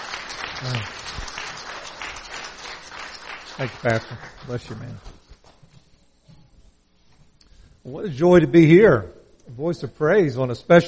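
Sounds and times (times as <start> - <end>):
audience applause: 0.0 - 5.0
speech: 0.6 - 1.4, 3.6 - 5.2, 7.9 - 10.8.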